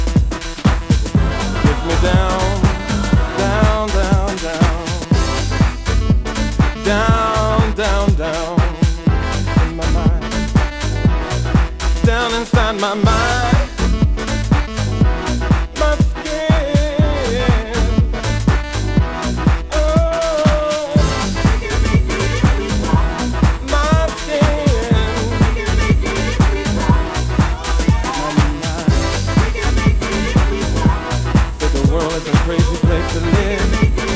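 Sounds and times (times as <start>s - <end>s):
swing music: 0.0s - 34.1s.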